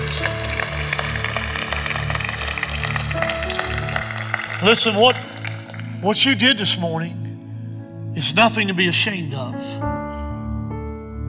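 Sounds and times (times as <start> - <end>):
audience clapping: 0.0 - 6.6
speech: 4.6 - 5.3, 6.0 - 7.2, 8.2 - 9.9.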